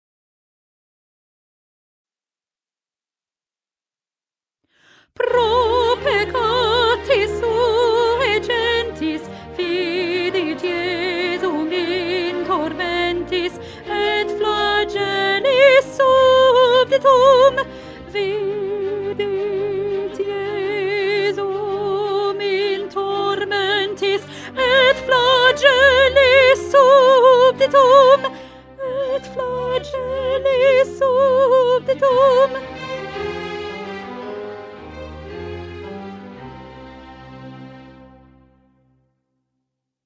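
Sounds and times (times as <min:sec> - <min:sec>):
soprano singing: 0:05.1 - 0:38.0.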